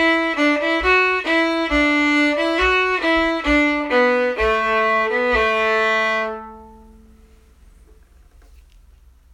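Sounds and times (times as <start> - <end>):
cello: 0.0 - 6.9
viola: 0.0 - 7.4.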